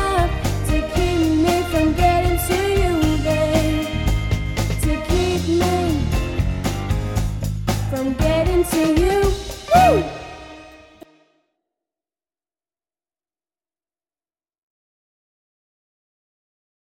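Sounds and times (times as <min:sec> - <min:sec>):
vocals: 0:00.0 - 0:06.4, 0:07.7 - 0:10.8.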